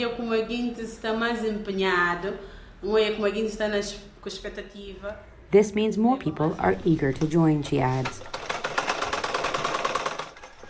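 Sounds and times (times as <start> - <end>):
speech: 0.0 - 8.4
sewing machine stitching as a fashion designer fills orders: 6.7 - 10.6.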